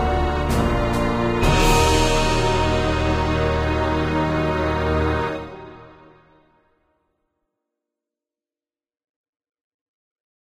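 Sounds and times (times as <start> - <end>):
instrumental national anthem: 0.0 - 6.6.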